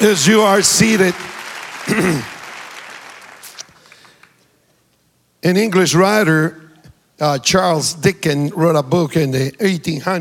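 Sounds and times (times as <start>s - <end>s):
speech: 0.0s - 2.4s, 5.4s - 6.6s, 7.2s - 10.2s
audience clapping hands: 0.0s - 4.6s.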